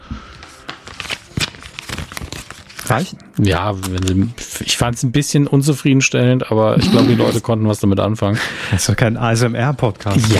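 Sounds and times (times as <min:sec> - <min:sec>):
glossy coated magazine paper rustling and crinkling: 0:00.2 - 0:04.9, 0:09.8 - 0:10.3
speech: 0:02.9 - 0:10.3.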